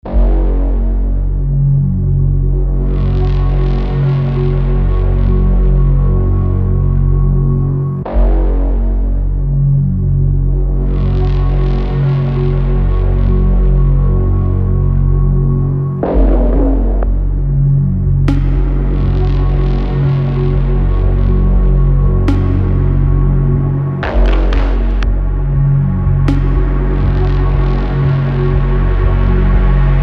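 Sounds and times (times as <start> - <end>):
edm music: 0.1 - 30.0.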